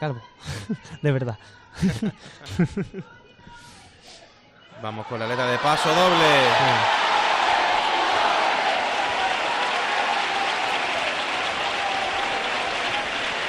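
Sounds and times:
speech: 0:00.0 - 0:03.2, 0:04.8 - 0:07.1
laughter: 0:01.7 - 0:03.2
theatre audience cheering: 0:04.7 - 0:13.4
theatre stalls audience applauding a carnival chirigota: 0:05.2 - 0:13.4.

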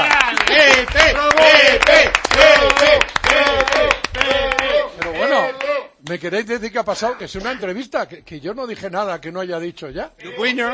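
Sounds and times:
people clapping: 0:00.0 - 0:06.2
speech: 0:06.2 - 0:10.7.

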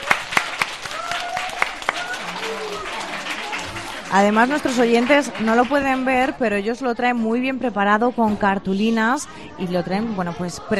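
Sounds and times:
small audience applause: 0:00.0 - 0:06.4
murmur of voices: 0:00.0 - 0:10.7
speech: 0:04.1 - 0:10.7.

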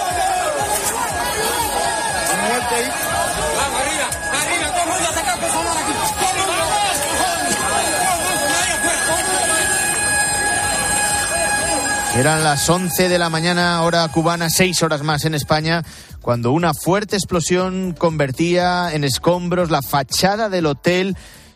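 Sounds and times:
rescue teams' overlapping voices and calls at collapsed hotel: 0:00.0 - 0:15.8
speech: 0:12.2 - 0:21.4.

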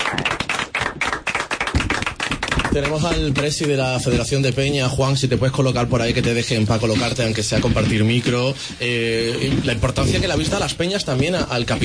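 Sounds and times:
rhythmic group clapping at a supporters' club gathering: 0:00.0 - 0:04.4
speech: 0:02.8 - 0:11.8.

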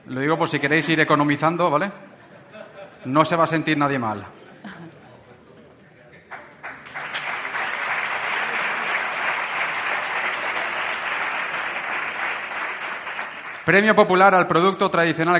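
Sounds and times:
speech: 0:00.1 - 0:02.1, 0:03.0 - 0:04.8, 0:13.7 - 0:15.3
laughter: 0:02.1 - 0:03.4, 0:04.3 - 0:10.8
audience applause: 0:06.3 - 0:13.8.

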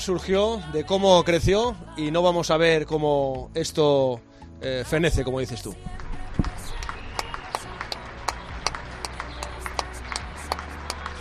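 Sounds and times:
speech: 0:00.0 - 0:06.0
scattered applause from balconies: 0:05.9 - 0:11.1.

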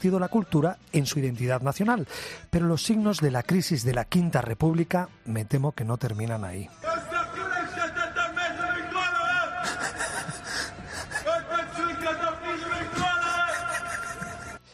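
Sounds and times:
speech: 0:00.0 - 0:06.9
crowd shouting in support: 0:06.8 - 0:09.8, 0:11.2 - 0:14.0
laughter: 0:07.2 - 0:14.7.

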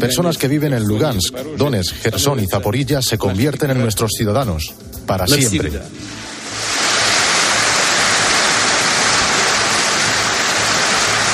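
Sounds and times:
speech: 0:00.0 - 0:06.7
audience applause: 0:06.3 - 0:11.3.

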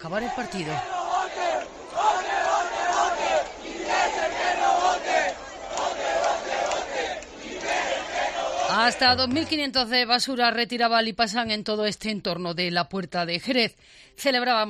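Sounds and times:
speech: 0:00.0 - 0:01.0, 0:08.8 - 0:14.6
crowd celebrating a football victory in square: 0:00.1 - 0:09.6.

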